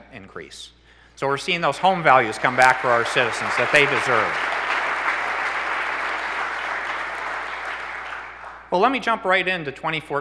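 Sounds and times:
speech: 0:00.1 - 0:04.6, 0:08.7 - 0:10.2
audience applause at a political speech about Michigan: 0:01.8 - 0:08.7.

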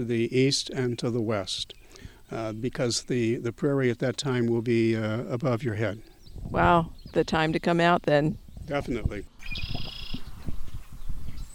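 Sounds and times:
speech: 0:00.0 - 0:09.8
faint bird chirp: 0:00.0 - 0:11.5
bird buzzy trill: 0:09.4 - 0:10.3.

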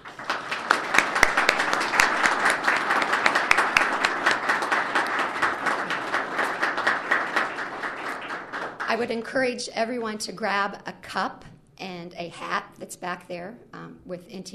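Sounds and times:
audience applause: 0:00.0 - 0:09.1
speech: 0:08.9 - 0:14.5.

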